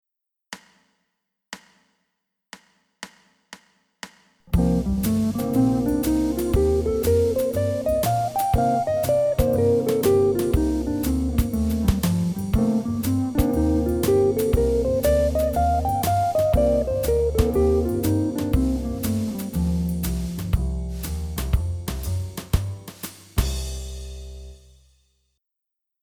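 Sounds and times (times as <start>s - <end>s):
mixolydian mode music: 4.5s - 24.6s.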